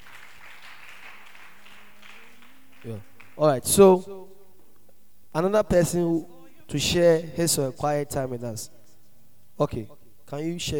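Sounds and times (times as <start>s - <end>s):
audience applause: 0.0s - 3.6s
speech: 2.8s - 4.4s, 5.3s - 8.8s, 9.6s - 10.7s.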